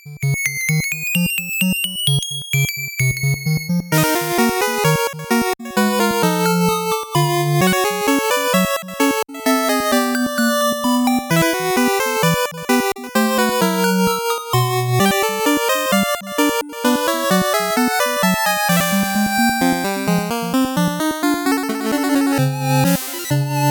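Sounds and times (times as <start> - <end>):
fast 8-bit background music: 0.2 - 23.6.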